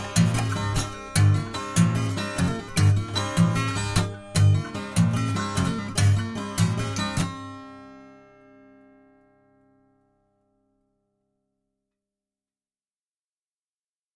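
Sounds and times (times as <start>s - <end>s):
slap guitar: 0.0s - 8.1s.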